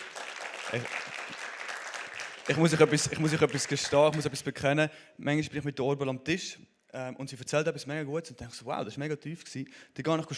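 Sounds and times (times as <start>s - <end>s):
applause: 0.0s - 4.6s
speech: 0.7s - 1.1s, 2.5s - 10.3s.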